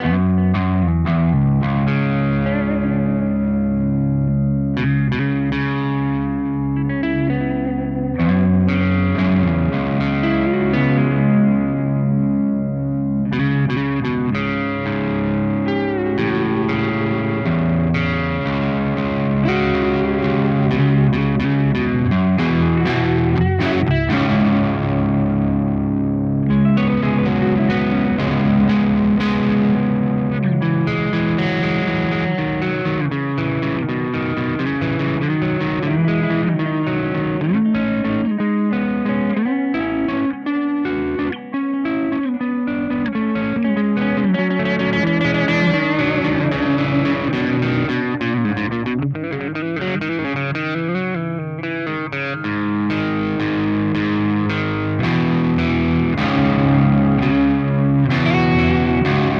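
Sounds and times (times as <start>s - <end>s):
Cort MBM 1 guitar through Peavey amp with crunch: 0.0s - 59.3s.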